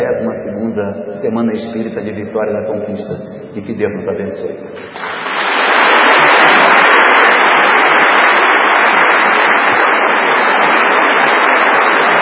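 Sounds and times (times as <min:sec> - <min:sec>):
speech: 0:00.0 - 0:05.2
audience applause: 0:04.8 - 0:12.2.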